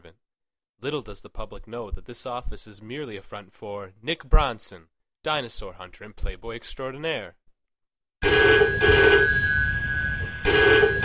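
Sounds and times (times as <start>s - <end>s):
speech: 0.8s - 7.4s, 8.2s - 9.4s
telephone ringing: 8.2s - 11.0s.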